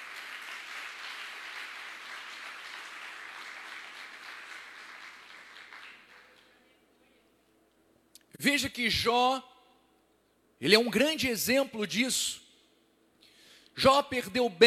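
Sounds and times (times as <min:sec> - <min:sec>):
audience applauding: 0:00.0 - 0:06.5
speech: 0:08.4 - 0:09.5, 0:10.6 - 0:12.4, 0:13.8 - 0:14.6.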